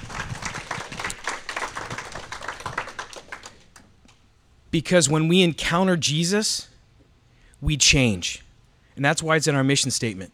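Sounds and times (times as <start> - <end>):
audience applause: 0.0 - 3.9
speech: 4.7 - 6.7, 7.6 - 8.4, 9.0 - 10.3.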